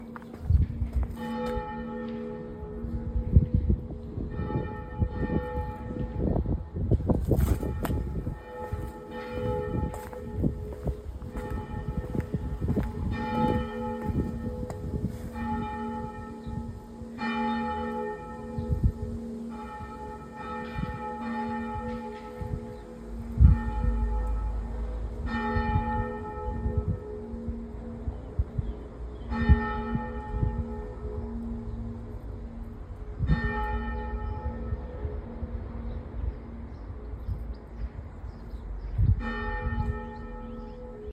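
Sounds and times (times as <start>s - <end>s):
church bell ringing, pulled bell: 0.0s - 37.4s, 39.2s - 41.1s.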